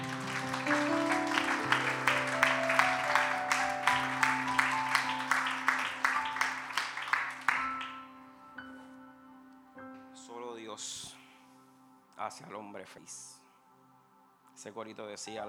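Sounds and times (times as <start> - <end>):
audience applause: 0.0 - 8.0
speech: 12.3 - 13.3, 14.6 - 15.4.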